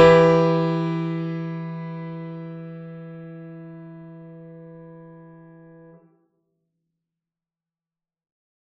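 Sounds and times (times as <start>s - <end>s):
piano: 0.0s - 6.1s.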